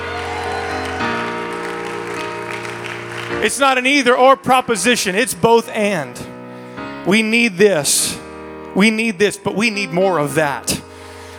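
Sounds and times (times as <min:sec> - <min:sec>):
audience clapping hands in applause: 0:00.0 - 0:03.7
sustained musical tones: 0:00.0 - 0:04.0
speech: 0:03.4 - 0:06.3, 0:07.1 - 0:10.9.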